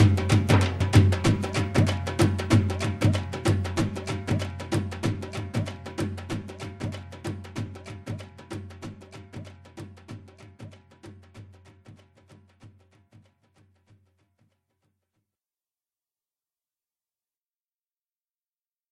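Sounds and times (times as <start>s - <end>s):
Punjabi dhol drum rhythm: 0.0s - 14.2s.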